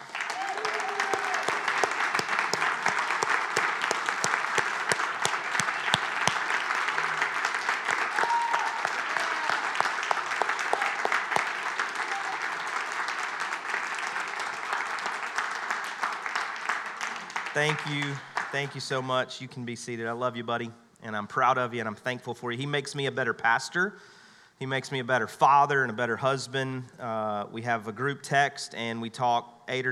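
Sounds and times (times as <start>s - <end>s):
audience applauding: 0.0s - 19.0s
speech: 17.6s - 29.9s.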